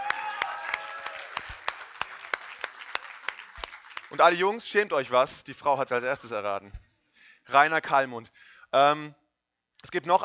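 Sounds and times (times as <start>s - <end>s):
audience applause: 0.0s - 4.4s
speech: 4.1s - 6.8s, 7.5s - 9.2s, 9.8s - 10.2s.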